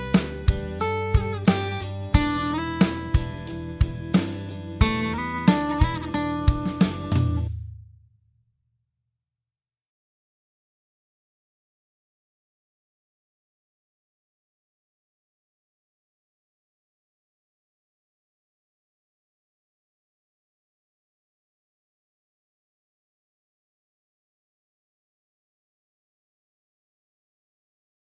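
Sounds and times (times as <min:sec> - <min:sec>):
guitar backing: 0:00.0 - 0:07.8.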